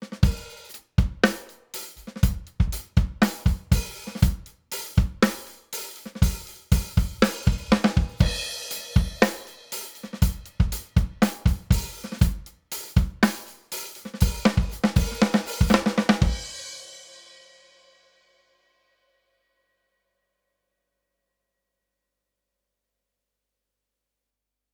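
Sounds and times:
slow drums at 110 Hz: 0:00.0 - 0:17.8.

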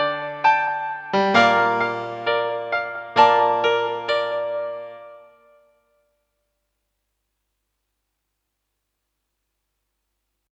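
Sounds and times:
low grand piano: 0:00.0 - 0:05.7.

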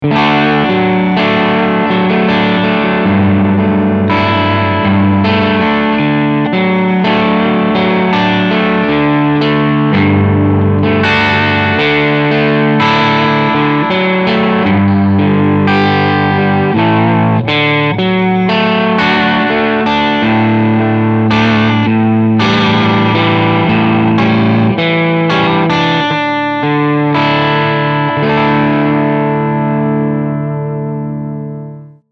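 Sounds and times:
medium gain distorted guitar: 0:00.0 - 0:32.0.

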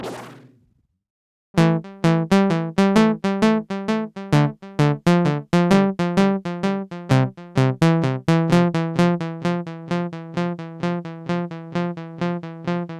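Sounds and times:
Malekko Manther delay and freeze effect: 0:01.6 - 0:12.9.

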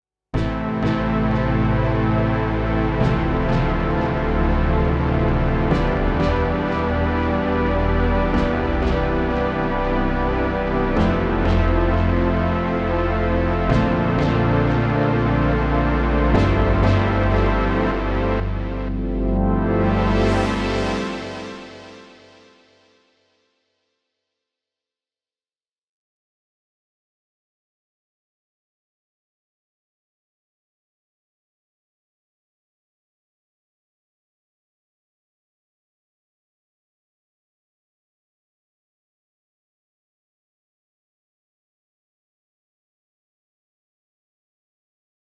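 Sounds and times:
Moog synth with tape echo: 0:00.4 - 0:22.7.

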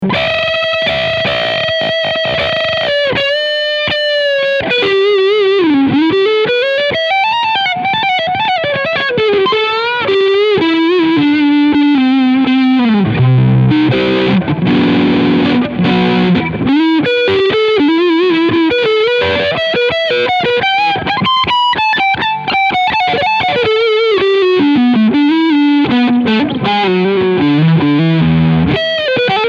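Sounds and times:
lead guitar on neck single-coil pickup: 0:00.0 - 0:29.4.

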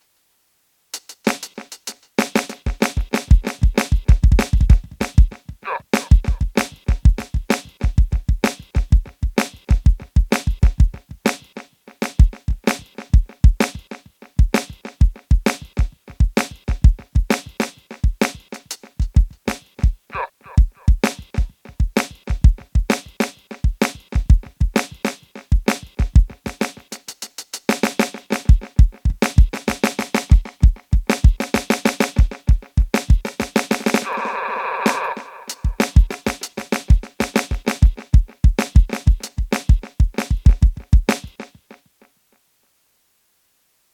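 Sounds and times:
Roland SPD-SX Pro snare drum: 0:01.0 - 0:41.9
Roland SPD-SX Pro kick drum: 0:03.0 - 0:05.4, 0:06.1 - 0:11.2, 0:13.2 - 0:13.6, 0:14.4 - 0:17.3, 0:19.0 - 0:20.0, 0:20.6 - 0:22.9, 0:23.7 - 0:24.8, 0:25.6 - 0:26.4, 0:28.5 - 0:29.6, 0:30.3 - 0:31.4, 0:35.7 - 0:36.1, 0:36.9 - 0:41.4.

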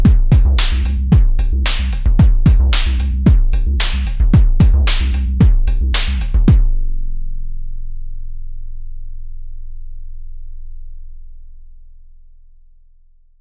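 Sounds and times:
bass kick drum: 0:00.0 - 0:08.1.

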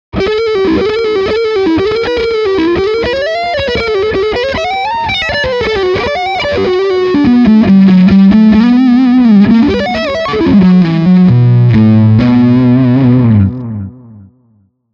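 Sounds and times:
lead guitar on front pickup: 0:00.2 - 0:14.6.

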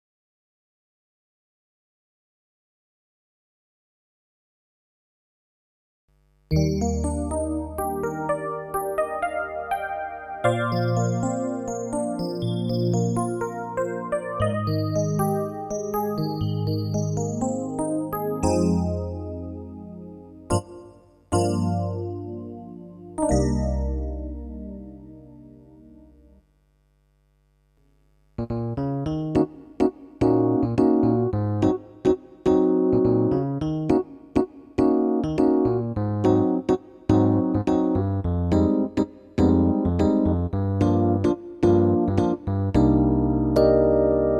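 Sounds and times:
S650 electric pianos: 0:06.5 - 0:26.2, 0:28.7 - 0:44.3.

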